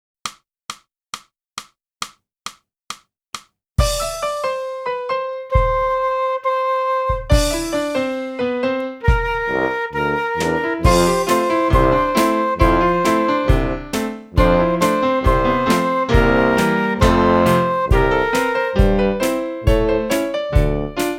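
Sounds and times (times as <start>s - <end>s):
flute: 4.4s - 8.4s, 9.0s - 21.1s.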